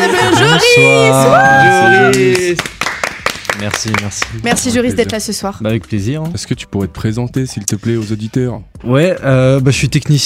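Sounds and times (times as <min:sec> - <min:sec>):
speech: 0:00.6 - 0:02.7, 0:03.6 - 0:10.2
applause: 0:01.9 - 0:04.6.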